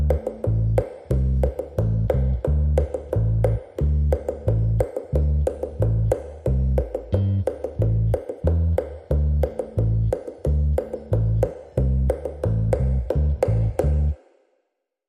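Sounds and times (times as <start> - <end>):
bass: 0.0 - 14.2
percussion: 0.0 - 14.3.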